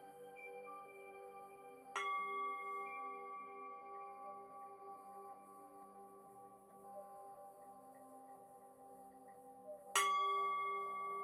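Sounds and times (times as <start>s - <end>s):
singing bowl ringing: 0.0s - 7.6s, 9.9s - 11.2s.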